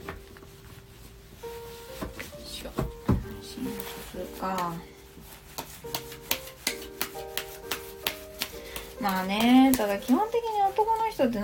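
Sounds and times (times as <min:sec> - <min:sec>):
speech: 0:04.2 - 0:04.9, 0:09.0 - 0:11.4
tarot cards shuffling: 0:05.6 - 0:10.0.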